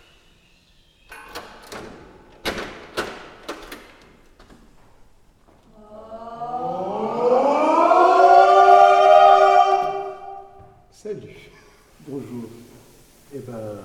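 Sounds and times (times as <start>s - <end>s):
background noise: 0.0s - 13.8s.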